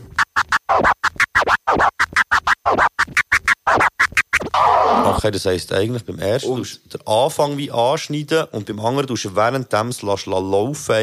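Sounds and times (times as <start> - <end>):
turntable scratching with chirp and flare cuts: 0.0 - 5.4, 6.2 - 6.8
speech: 5.2 - 11.0.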